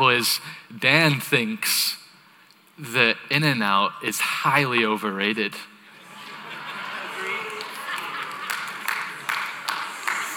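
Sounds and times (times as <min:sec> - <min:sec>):
speech: 0:00.1 - 0:02.0, 0:02.8 - 0:05.7
laughter: 0:05.9 - 0:10.3
hands clapping: 0:06.9 - 0:10.3.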